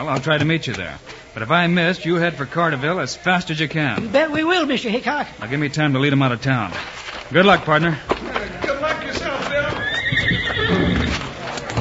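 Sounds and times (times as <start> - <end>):
speech: 0.0 - 8.6
horses: 6.7 - 11.7.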